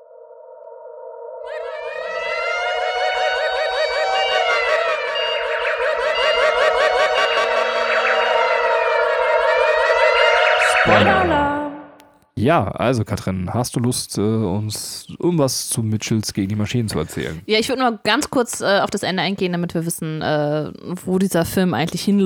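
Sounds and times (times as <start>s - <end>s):
alarm siren sound effect: 0.0s - 12.0s
speech: 12.4s - 22.2s.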